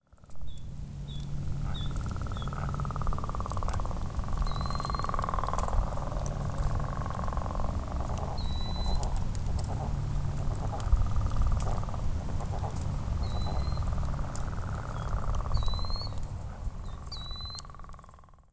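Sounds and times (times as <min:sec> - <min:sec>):
bullfrogs heard on a run: 0:00.1 - 0:18.5.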